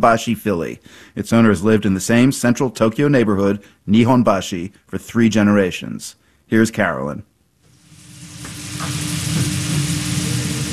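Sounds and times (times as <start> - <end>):
speech: 0.0 - 7.3
low hum: 7.7 - 10.7
steak sizzling on a hot griddle: 7.7 - 10.7.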